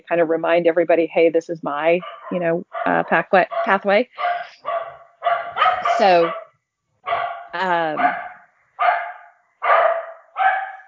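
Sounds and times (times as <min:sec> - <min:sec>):
speech: 0:00.1 - 0:04.5, 0:06.0 - 0:06.4, 0:07.1 - 0:08.3
dogs barking at bears on a porch: 0:02.0 - 0:06.5, 0:07.1 - 0:10.8.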